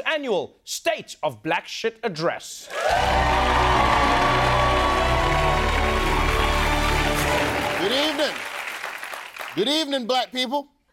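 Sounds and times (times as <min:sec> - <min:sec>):
speech: 0:00.2 - 0:04.4, 0:09.6 - 0:10.7
audience cheering and whooping: 0:02.7 - 0:08.8
audience applause: 0:02.7 - 0:09.7.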